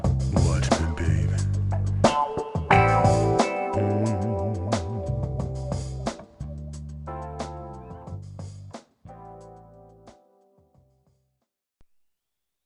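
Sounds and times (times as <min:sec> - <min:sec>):
acid jazz: 0:00.0 - 0:10.1.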